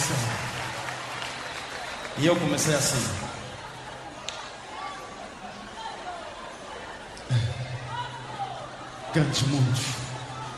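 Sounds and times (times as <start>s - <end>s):
round of applause: 0.0s - 4.9s
speech: 2.2s - 3.4s, 9.2s - 10.0s.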